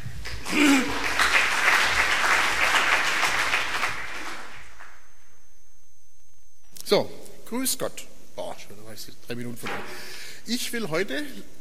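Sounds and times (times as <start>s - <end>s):
audience applause: 0.0s - 5.0s
brief vocal sound: 0.5s - 1.1s
speech: 6.9s - 8.1s, 9.0s - 11.5s.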